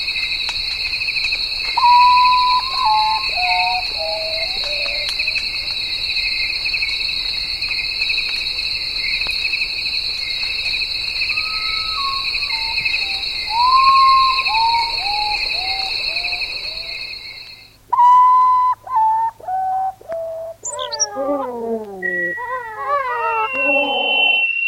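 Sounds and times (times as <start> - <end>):
loud steady buzz of insects: 0.0 - 19.0, 19.7 - 24.6
common potoo whistles: 1.8 - 5.5, 11.2 - 24.6.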